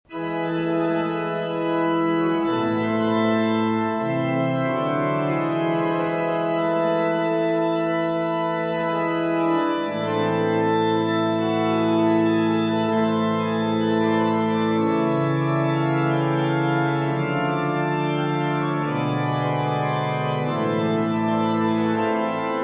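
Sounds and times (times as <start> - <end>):
organ interlude: 0.1 - 22.6.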